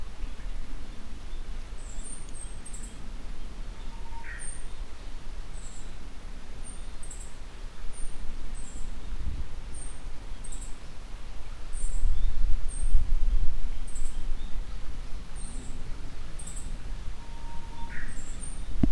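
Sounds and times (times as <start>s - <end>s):
Japanese bush warbler singing in rural satoyama farmland at 750 to 850 m elevation: 0.2s - 18.9s.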